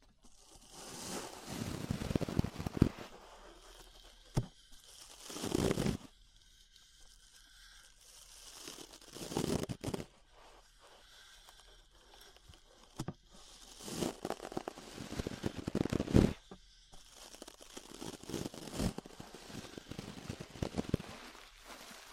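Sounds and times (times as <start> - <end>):
ear brushing strokes: 0.6 - 6.1, 7.0 - 12.5, 13.4 - 22.1.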